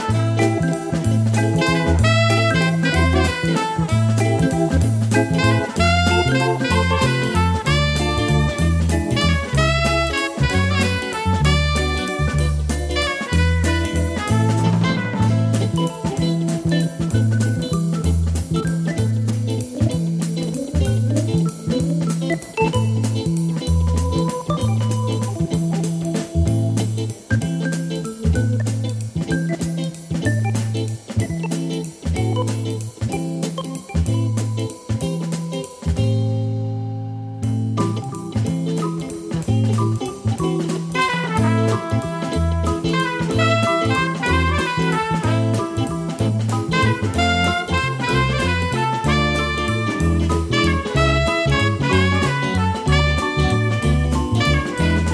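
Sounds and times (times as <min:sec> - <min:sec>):
pop-jazz music: 0:00.0 - 0:55.1.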